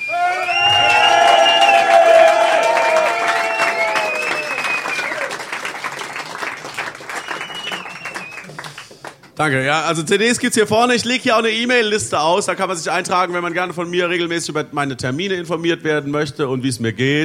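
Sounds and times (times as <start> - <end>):
crowd applauding the bar staff at a live show: 0.0 - 9.4
speech: 9.4 - 17.2.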